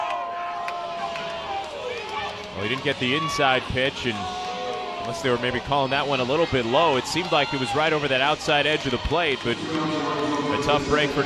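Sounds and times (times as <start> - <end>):
dugout players yelling at a baseball game: 0.0 - 11.2
speech: 2.6 - 4.4, 5.0 - 11.2.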